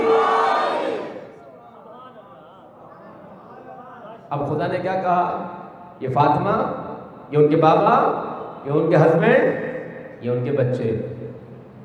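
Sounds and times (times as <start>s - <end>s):
crowd shouting a slogan during a religious sermon: 0.0s - 4.3s
speech: 4.3s - 9.6s, 10.2s - 11.2s.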